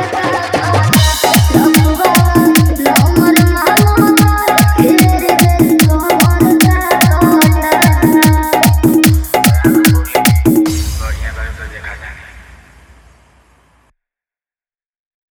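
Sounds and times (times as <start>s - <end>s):
hard bass: 0.7s - 12.8s.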